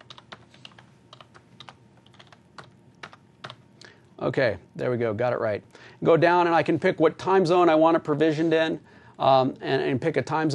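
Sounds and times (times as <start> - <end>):
typing login credentials on a computer keyboard: 0.0 - 3.6
speech: 4.2 - 10.5.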